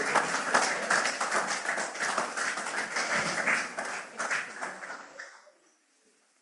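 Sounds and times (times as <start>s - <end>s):
audience clapping: 0.0s - 5.4s.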